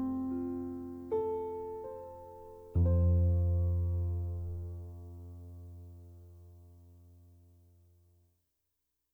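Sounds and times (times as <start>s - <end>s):
piano piece: 0.0s - 6.8s.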